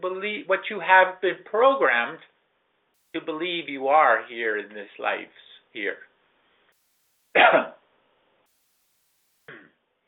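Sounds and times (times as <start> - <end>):
speech: 0.0 - 2.4, 3.1 - 6.1, 7.4 - 7.8
throat clearing by a channelling speaker: 7.4 - 7.8, 9.5 - 9.8.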